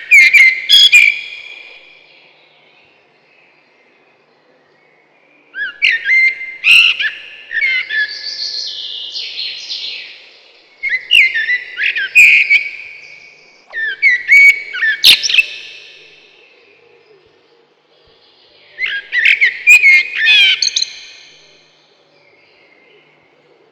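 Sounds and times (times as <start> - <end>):
common blackbird singing mellow fluted whistled phrases: 0.0 - 1.8, 5.6 - 10.0, 10.8 - 16.2, 18.8 - 21.4.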